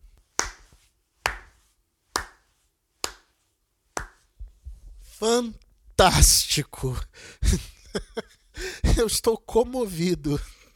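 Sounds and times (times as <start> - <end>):
slow deliberate applause: 0.4 - 3.3, 4.0 - 4.3
speech: 5.2 - 8.4, 9.0 - 10.6
laughter: 7.4 - 8.4.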